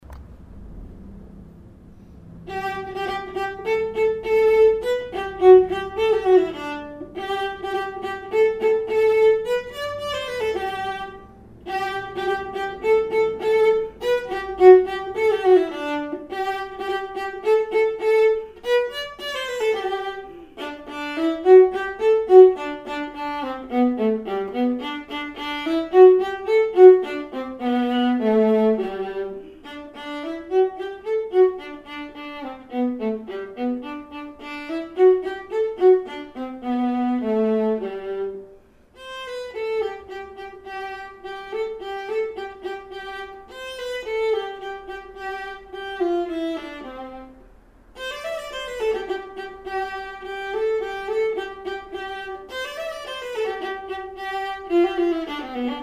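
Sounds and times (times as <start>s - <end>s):
viola playing a drinking song: 2.1s - 55.8s.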